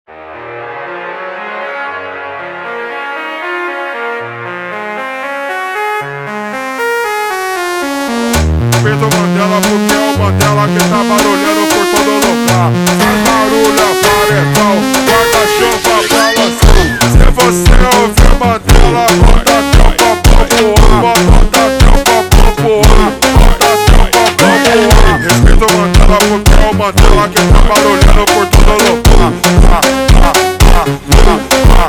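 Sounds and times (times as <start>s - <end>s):
slowed funk music: 7.9s - 31.8s.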